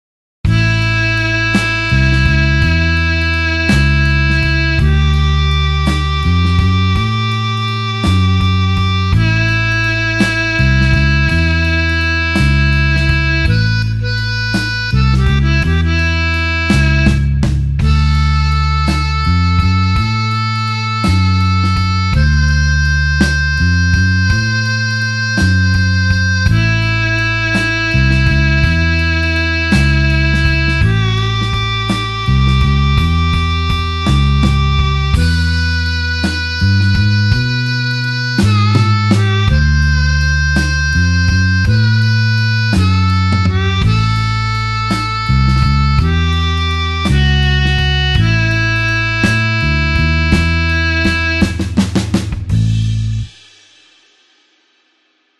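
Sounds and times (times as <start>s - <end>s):
slow blues harmonica in A: 0.5s - 53.4s.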